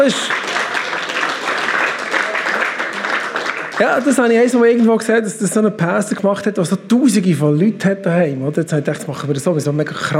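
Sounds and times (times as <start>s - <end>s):
speech: 0.0s - 0.5s, 3.8s - 10.1s
warm audience applause: 0.0s - 4.8s.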